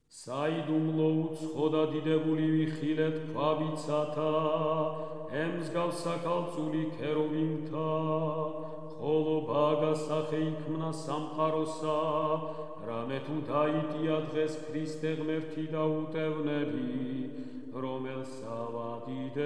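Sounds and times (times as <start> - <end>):
irmos chant from a canon: 0.0 - 19.4.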